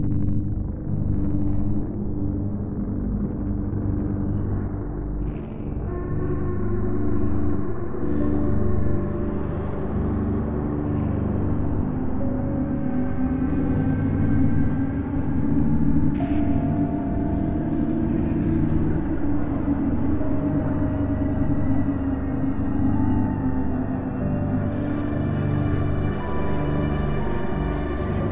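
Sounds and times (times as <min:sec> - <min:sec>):
creeping instrumental music: 0:00.0 - 0:28.2.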